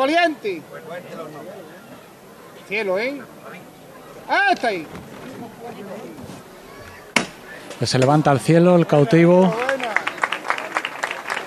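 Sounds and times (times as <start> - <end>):
speech: 0.0 - 1.8, 2.7 - 6.3, 7.8 - 9.7
audience applause: 8.8 - 11.4.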